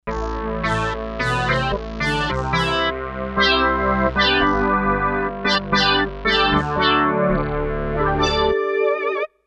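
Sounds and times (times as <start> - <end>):
Kawai K5000S synthesizer: 0.1 - 9.3.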